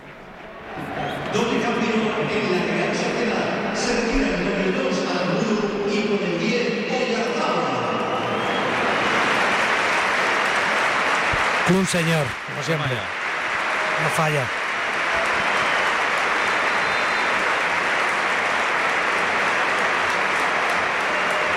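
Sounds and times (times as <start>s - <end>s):
large stadium crowd applauding: 0.0s - 4.1s, 7.5s - 21.5s
speech: 2.2s - 7.3s, 11.7s - 13.2s, 14.0s - 14.6s.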